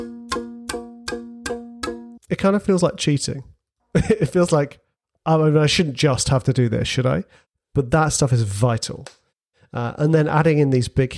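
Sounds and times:
ticking clock in trailer music: 0:00.0 - 0:02.2
speech: 0:02.4 - 0:11.1.

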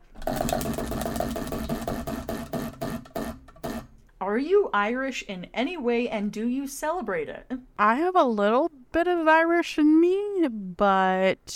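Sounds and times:
spinning question wheel ticking: 0:00.2 - 0:03.9
faint constant hum: 0:03.9 - 0:11.5
speech: 0:04.4 - 0:11.5.

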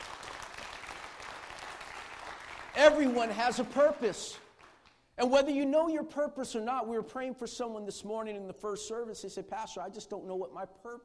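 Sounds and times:
audience clapping: 0:00.0 - 0:05.1
speech: 0:02.8 - 0:04.4, 0:05.2 - 0:11.0.

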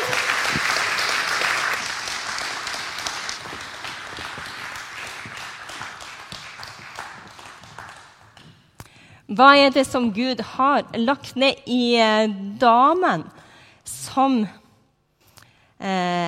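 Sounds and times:
audience applause: 0:00.0 - 0:08.5
speech: 0:09.4 - 0:13.4, 0:14.2 - 0:14.6, 0:15.8 - 0:16.2.

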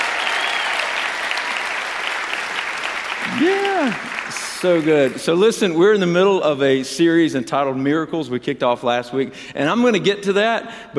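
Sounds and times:
church congregation applauding: 0:00.0 - 0:06.1
speech: 0:03.4 - 0:10.9.

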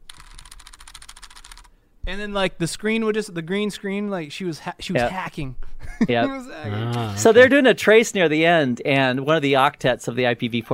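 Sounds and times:
imitated computer keyboard typing: 0:00.0 - 0:01.7
speech: 0:02.1 - 0:10.7.

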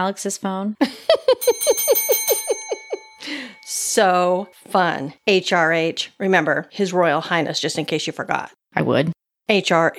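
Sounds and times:
speech: 0:00.0 - 0:02.3, 0:03.3 - 0:09.9
small hand bell ringing: 0:01.4 - 0:04.6.

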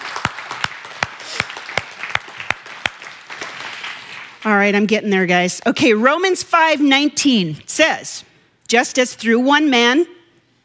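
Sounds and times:
people applauding: 0:00.0 - 0:04.4
speech: 0:04.4 - 0:10.2.

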